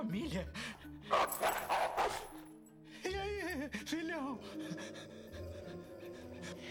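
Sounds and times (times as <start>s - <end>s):
speech: 0.0s - 2.5s, 3.6s - 5.9s
dog barking: 1.1s - 2.4s.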